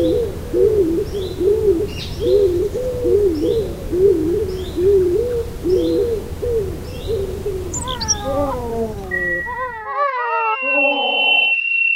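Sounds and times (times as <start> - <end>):
background hiss: 0.0 - 9.8
Stock Dove cooing: 0.0 - 11.3
faint high bird calls: 0.0 - 11.6.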